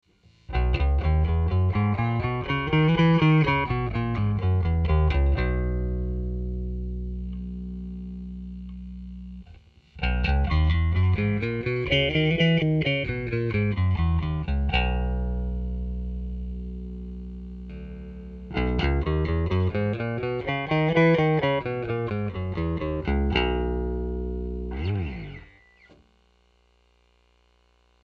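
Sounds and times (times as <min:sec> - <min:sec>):
bass: 0:00.2 - 0:28.0.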